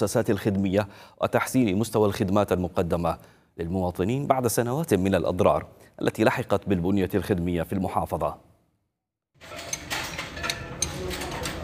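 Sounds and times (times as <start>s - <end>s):
speech: 0.0s - 8.5s
wrenches and spare parts clinking during car repair: 9.4s - 11.6s.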